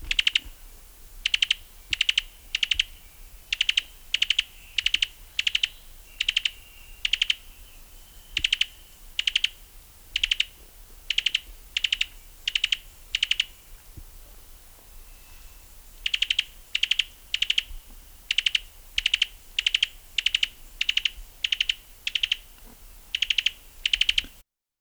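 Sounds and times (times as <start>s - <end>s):
Cuban tody calling: 0.0s - 24.4s.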